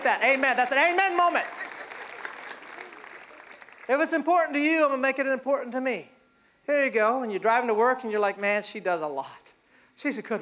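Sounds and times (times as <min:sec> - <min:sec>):
speech: 0:00.0 - 0:01.7, 0:03.9 - 0:06.1, 0:06.7 - 0:10.4
audience clapping: 0:00.0 - 0:04.7.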